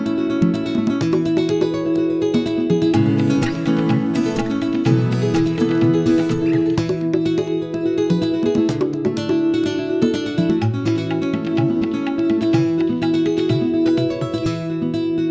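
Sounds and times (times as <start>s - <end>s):
congas playing: 0.0s - 15.2s.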